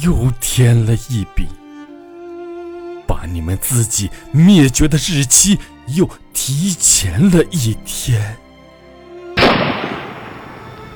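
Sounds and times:
speech: 0:00.0 - 0:01.6, 0:03.2 - 0:08.4
gunshot: 0:09.4 - 0:10.8.

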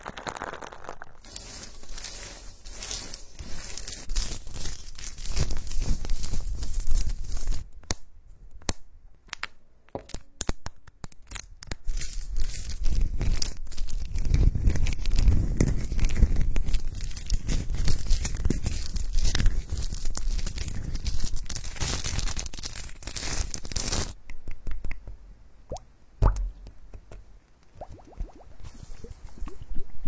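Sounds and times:
dense crackly rubbing: 0:00.0 - 0:08.0, 0:11.2 - 0:24.7
sparse sharp clicks and taps: 0:24.2 - 0:27.7.

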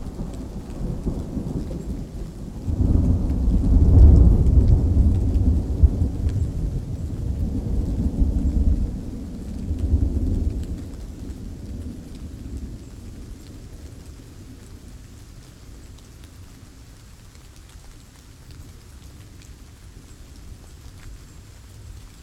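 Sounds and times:
deep roll of thunder in a raging thunderstorm: 0:00.0 - 0:15.0
low steady hiss of rain: 0:00.0 - 0:22.2.

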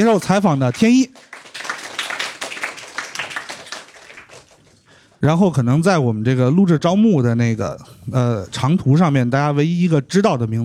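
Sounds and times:
speech: 0:00.0 - 0:01.3, 0:05.2 - 0:10.6
applause: 0:00.0 - 0:04.9.

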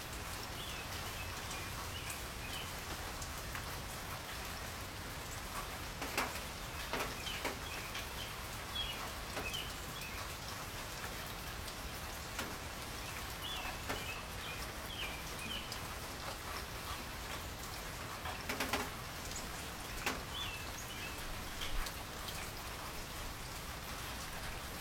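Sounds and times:
rain falling in a courtyard: 0:00.0 - 0:24.7
rain drips and taps: 0:06.0 - 0:10.4, 0:11.0 - 0:22.8.

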